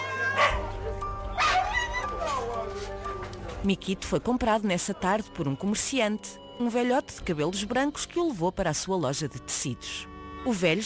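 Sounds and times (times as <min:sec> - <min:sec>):
dogs barking and yipping at a market: 0:00.1 - 0:00.8, 0:01.3 - 0:02.8
speech: 0:03.6 - 0:10.8.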